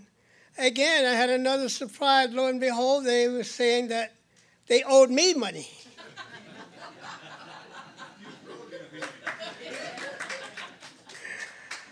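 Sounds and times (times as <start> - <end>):
speech: 0.6 - 5.9
chuckling: 5.8 - 11.9
hand clapping: 9.0 - 11.9.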